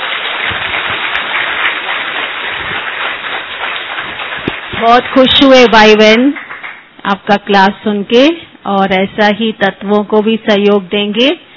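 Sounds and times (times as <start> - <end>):
audience applause: 0.0 - 5.7, 6.3 - 6.9
speech: 4.8 - 6.4, 7.0 - 11.5.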